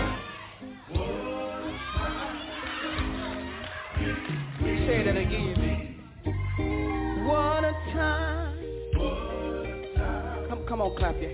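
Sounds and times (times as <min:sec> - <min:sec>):
crowd shouting and cheering: 0:00.0 - 0:11.2
speech: 0:10.9 - 0:11.3.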